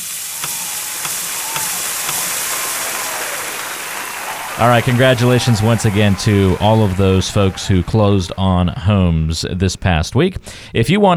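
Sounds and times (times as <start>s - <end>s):
steak sizzling in a hot pan: 0.0s - 3.9s
laughter: 0.6s - 9.7s
speech: 4.6s - 11.1s.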